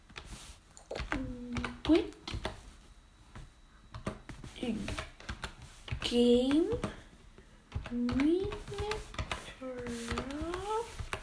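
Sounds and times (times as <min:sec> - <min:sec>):
computer keyboard typing while looking up a Minecraft server: 0:00.8 - 0:02.6, 0:03.9 - 0:07.0, 0:07.7 - 0:11.2
speech: 0:01.9 - 0:02.2, 0:04.6 - 0:05.0, 0:06.1 - 0:07.0, 0:07.9 - 0:08.3.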